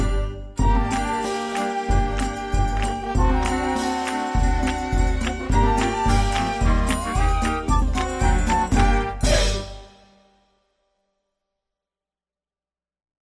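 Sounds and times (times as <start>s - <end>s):
band playing: 0.6s - 9.9s.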